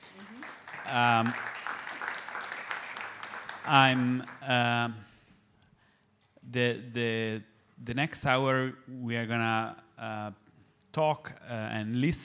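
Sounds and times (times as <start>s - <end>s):
crowd applause: 0.0s - 4.8s
speech: 0.9s - 1.5s, 3.7s - 5.1s, 6.5s - 12.2s.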